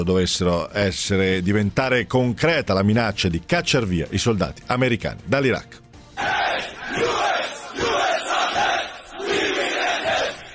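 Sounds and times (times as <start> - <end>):
speech: 0.0 - 6.3
huge crowd chanting slogans: 6.2 - 10.5.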